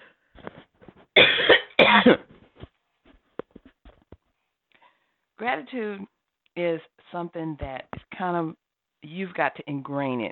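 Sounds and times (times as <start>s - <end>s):
loud harsh coughs: 1.2s - 2.3s
speech: 5.6s - 10.2s.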